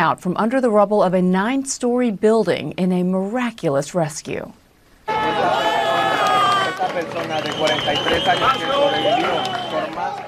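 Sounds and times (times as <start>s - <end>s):
speech: 0.0s - 4.6s, 5.3s - 5.8s, 7.0s - 10.2s
crowd cheering at rubble rescue: 5.1s - 10.2s.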